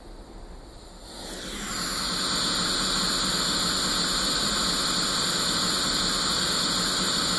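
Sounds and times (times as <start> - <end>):
white noise from a radio: 0.0 - 7.3.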